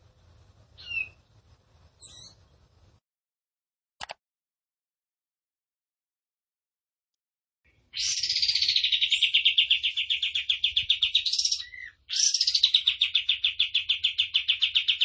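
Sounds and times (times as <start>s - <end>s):
songbird trilling: 0.8s - 1.2s, 2.0s - 2.4s, 7.9s - 15.0s.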